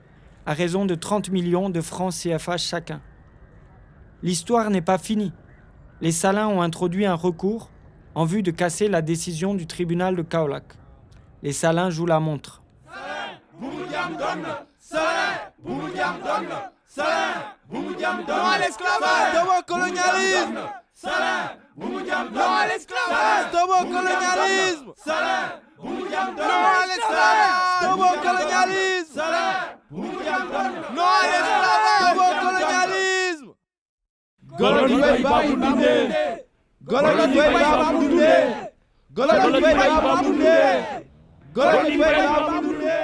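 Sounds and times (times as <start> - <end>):
speech: 0.5 - 3.1, 4.2 - 5.4, 6.0 - 10.8, 11.4 - 13.1, 15.6 - 33.1, 34.6 - 42.6
crowd of protesters chanting slogans: 12.8 - 33.5, 34.4 - 43.0.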